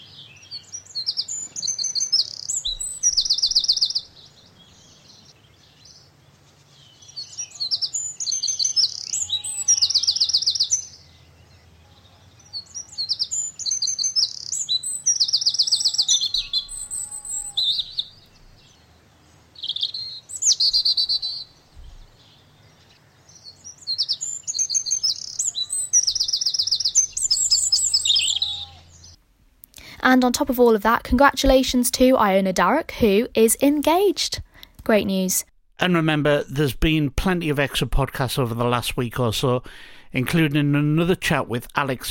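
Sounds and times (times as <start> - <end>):
birdsong: 0.0 - 29.2
speech: 30.1 - 42.1.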